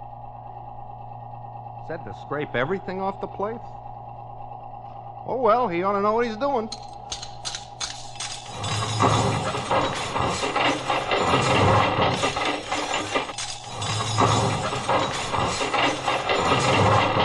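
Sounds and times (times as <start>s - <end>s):
speech: 1.9s - 3.9s, 5.3s - 7.2s
running garbage disposal grinding: 6.2s - 17.2s
silverware rattling in a garbage disposal: 6.7s - 17.2s.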